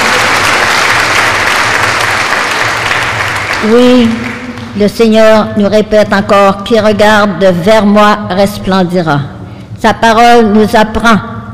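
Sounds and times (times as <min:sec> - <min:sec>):
crowd applauding: 0:00.0 - 0:04.8
speech: 0:03.6 - 0:11.5.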